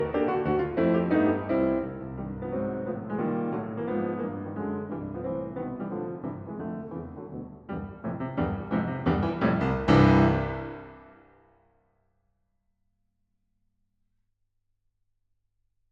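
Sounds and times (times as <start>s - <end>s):
piano rigaudon: 0.0s - 11.3s.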